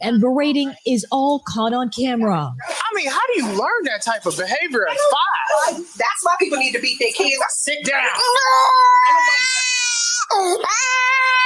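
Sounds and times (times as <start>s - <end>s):
speech: 0.0s - 9.7s, 10.3s - 11.4s
young boy crying: 8.0s - 11.4s.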